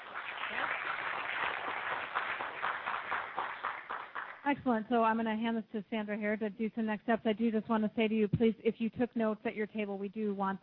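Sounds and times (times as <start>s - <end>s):
audience seated at tables clapping during a presentation: 0.0s - 4.5s
speech: 4.5s - 10.6s.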